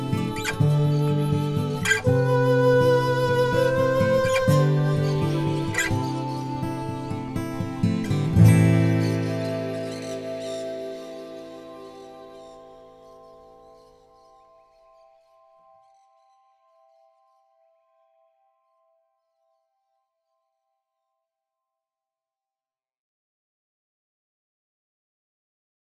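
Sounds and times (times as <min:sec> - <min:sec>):
dark forest ambience: 0:00.0 - 0:17.0.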